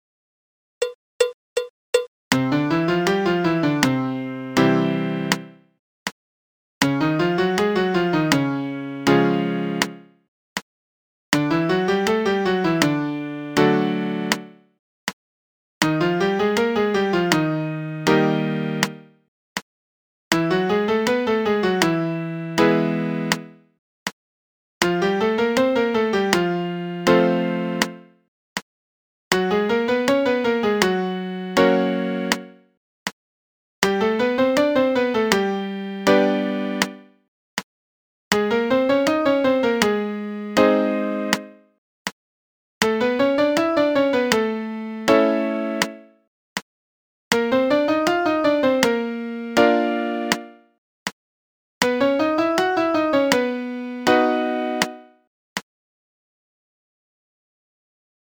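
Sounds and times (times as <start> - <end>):
chromatic five-finger triad piano exercise: 2.3 - 5.6, 6.8 - 10.2, 11.4 - 14.7, 15.8 - 19.1, 20.3 - 23.6, 24.8 - 28.2, 29.3 - 32.6, 33.8 - 37.1, 38.3 - 41.7, 42.8 - 46.2, 47.3 - 50.7, 51.8 - 55.1.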